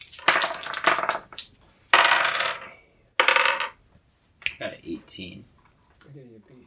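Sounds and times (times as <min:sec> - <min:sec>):
dice rolled on a table during a tabletop game: 0:00.0 - 0:03.8.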